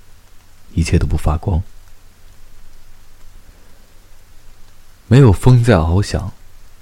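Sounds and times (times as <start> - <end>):
rain: 0.0 - 6.8
speech: 0.8 - 1.7, 5.1 - 6.4.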